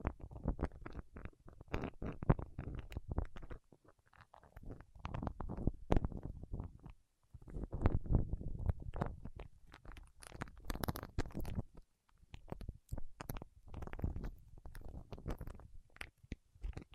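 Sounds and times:
wax fingertips crackling and squelching: 0:00.0 - 0:16.9.

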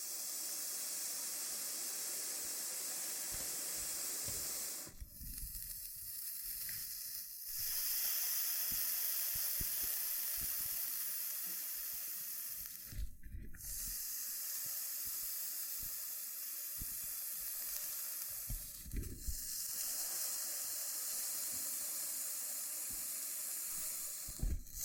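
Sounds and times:
loofah scratchy hiss: 0:00.0 - 0:24.8
soft low pops and thumps: 0:12.8 - 0:13.7, 0:18.5 - 0:19.6, 0:24.3 - 0:24.8.

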